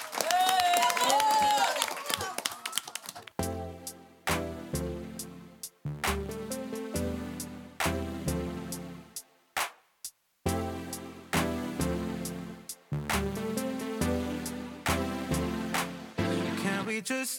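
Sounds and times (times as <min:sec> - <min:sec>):
crowd applauding: 0:00.0 - 0:03.4
music: 0:03.4 - 0:09.8, 0:10.4 - 0:17.3.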